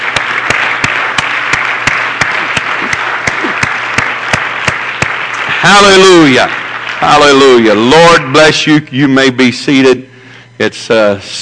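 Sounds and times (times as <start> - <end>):
audience clapping hands in praise: 0.0 - 8.2
speech: 5.6 - 11.4.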